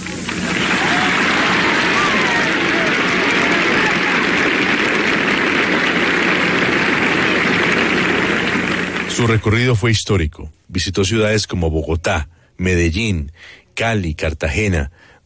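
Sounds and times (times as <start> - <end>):
crowd applauding: 0.0 - 9.6
speech: 9.2 - 15.1.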